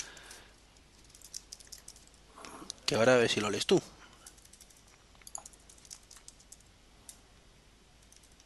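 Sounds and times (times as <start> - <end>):
typing on a computer keyboard into a spreadsheet in Numbers: 1.0 - 2.2, 4.2 - 6.7, 8.0 - 8.4
speech: 2.9 - 4.0.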